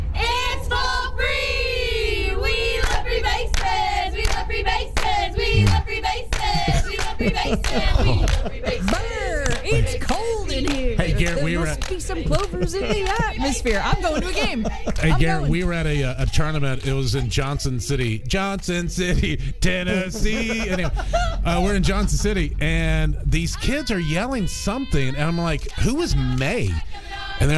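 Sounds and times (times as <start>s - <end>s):
group of voices chanting and yelling a cheer: 0.2s - 15.4s, 23.5s - 27.5s
rhythmic hand claps: 2.8s - 15.5s, 16.1s - 19.2s
laughter: 5.5s - 15.7s, 18.8s - 24.1s
speech: 11.3s - 27.5s.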